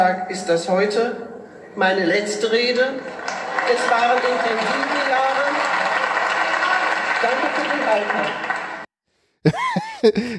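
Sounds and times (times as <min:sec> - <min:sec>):
speech: 0:00.0 - 0:05.2, 0:07.2 - 0:08.5, 0:09.4 - 0:10.3
applause in parliament after a speech: 0:03.0 - 0:08.9
laughter: 0:09.5 - 0:10.3.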